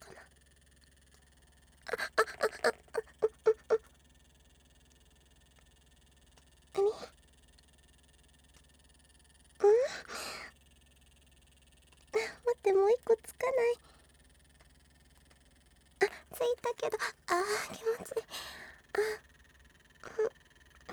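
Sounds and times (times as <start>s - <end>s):
woman with a beautiful voice moaning: 1.9s - 3.8s, 6.8s - 7.1s, 9.6s - 10.5s, 12.2s - 12.6s, 16.0s - 19.2s, 20.0s - 20.3s.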